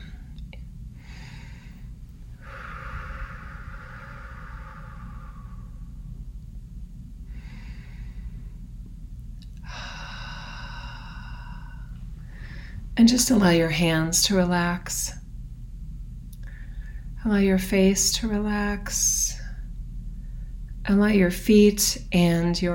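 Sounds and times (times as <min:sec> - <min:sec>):
deep breaths taken together during a guided relaxation: 0:00.0 - 0:06.4, 0:07.0 - 0:13.0, 0:16.4 - 0:17.2, 0:19.4 - 0:20.8
steady low hum: 0:00.0 - 0:22.7
speech: 0:13.0 - 0:15.2, 0:17.3 - 0:19.4, 0:20.9 - 0:22.7.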